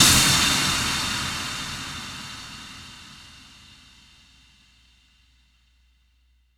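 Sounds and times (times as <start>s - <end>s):
impact sound effect: 0.0s - 4.0s.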